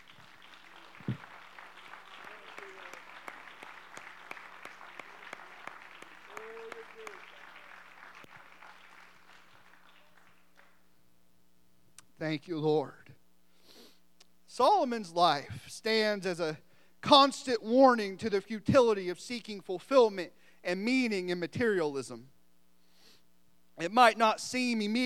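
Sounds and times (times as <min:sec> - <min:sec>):
scattered voices and cheers: 0:00.0 - 0:08.2
audience applause: 0:00.0 - 0:10.8
speech: 0:12.3 - 0:13.0, 0:14.6 - 0:22.4, 0:23.8 - 0:25.0.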